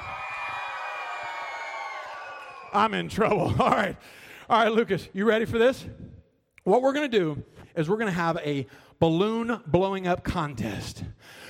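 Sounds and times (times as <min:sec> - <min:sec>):
audience section at a live show cheering on cue: 0:00.0 - 0:03.0
speech: 0:02.7 - 0:06.0, 0:06.6 - 0:11.4.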